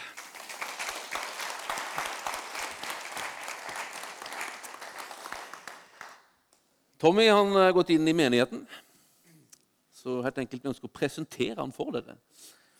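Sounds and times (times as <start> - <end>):
powerful applause: 0.0 - 6.4
speech: 7.0 - 8.8, 10.0 - 12.6.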